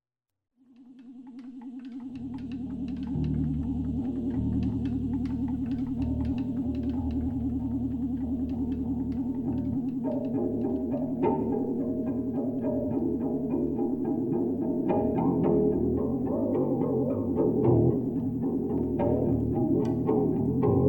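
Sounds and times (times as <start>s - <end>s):
insect groove music: 0.7s - 20.8s.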